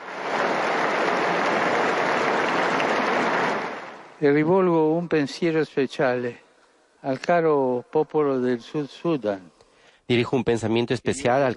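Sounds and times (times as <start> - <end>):
audience applause: 0.0 - 4.2
speech: 4.2 - 6.4, 7.0 - 11.5.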